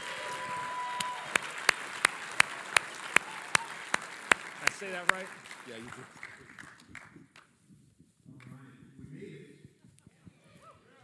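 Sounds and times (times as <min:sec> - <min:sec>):
church congregation applause welcoming speaker to the pulpit: 0:00.0 - 0:07.5
sharp evenly spaced claps: 0:00.0 - 0:07.5
speech: 0:04.8 - 0:06.2.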